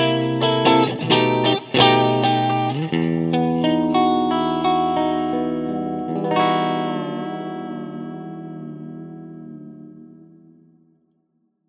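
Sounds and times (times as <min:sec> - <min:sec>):
clean Fender Stratocaster electric guitar: 0:00.0 - 0:11.0.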